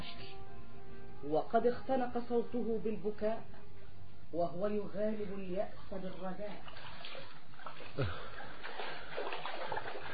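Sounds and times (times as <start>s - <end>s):
speech: 1.2s - 3.6s, 4.3s - 6.8s, 8.0s - 8.3s
river water flowing at the riverbank: 6.1s - 10.1s.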